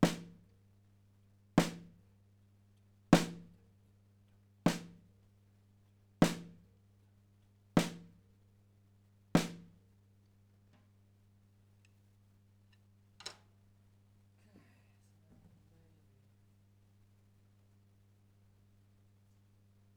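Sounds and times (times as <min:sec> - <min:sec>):
snare drum: 0:00.0 - 0:00.4, 0:01.6 - 0:02.0, 0:03.2 - 0:03.6, 0:04.7 - 0:05.1, 0:06.2 - 0:06.6, 0:07.8 - 0:08.2, 0:09.4 - 0:09.8.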